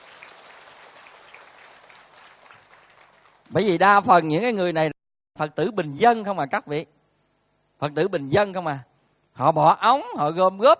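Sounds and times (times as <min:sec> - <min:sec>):
audience applause at a Buddhist retreat: 0:00.0 - 0:03.5
speech: 0:03.5 - 0:07.0, 0:07.8 - 0:10.7.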